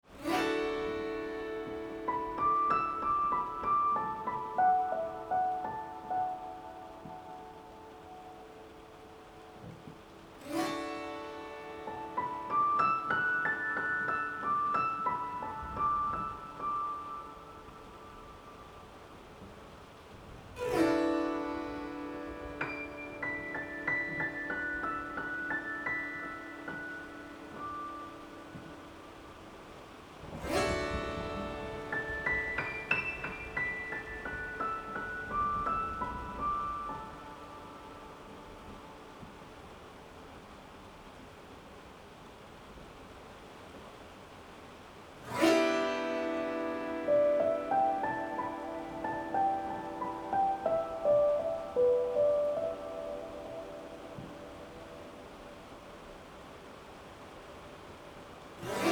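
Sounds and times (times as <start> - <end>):
harp: 0.1 - 17.9, 20.6 - 38.8, 45.3 - 55.4, 58.6 - 58.9.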